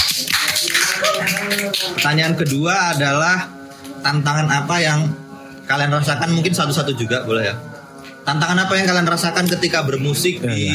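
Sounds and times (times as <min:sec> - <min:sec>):
audience clapping: 0:00.0 - 0:02.7
speech: 0:01.6 - 0:10.7.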